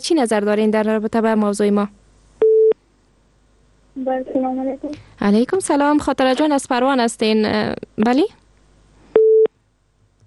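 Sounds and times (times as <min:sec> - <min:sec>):
speech: 0:00.0 - 0:02.0, 0:04.0 - 0:08.4
telephone busy-tone beep after a call is cut off: 0:09.2 - 0:09.5.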